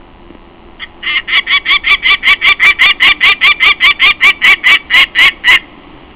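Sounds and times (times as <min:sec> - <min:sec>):
peregrine falcon calling: 0:00.8 - 0:05.7.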